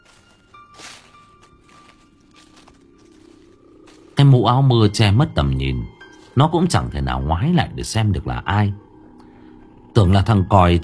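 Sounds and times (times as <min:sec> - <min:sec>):
footsteps crunching through dry leaves: 0:00.0 - 0:04.6, 0:05.9 - 0:06.5
speech: 0:04.2 - 0:08.9, 0:10.0 - 0:10.8.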